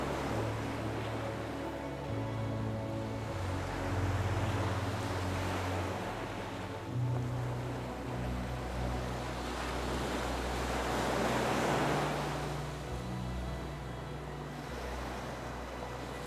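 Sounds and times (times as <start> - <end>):
ocean waves: 0.0 - 16.2
soft slow music: 0.0 - 16.2.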